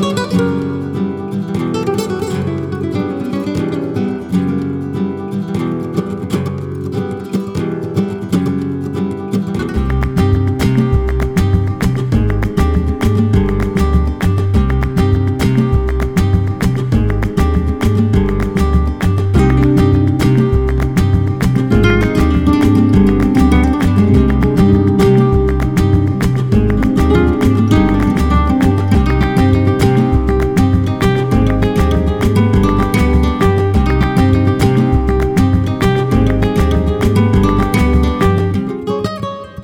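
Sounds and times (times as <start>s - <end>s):
flamenco guitars playing: 0.0s - 39.6s.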